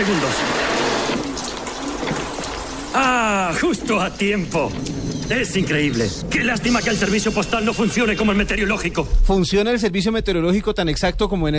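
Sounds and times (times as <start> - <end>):
speech: 0.0 - 0.5, 3.0 - 11.5
rain pouring: 0.0 - 9.3.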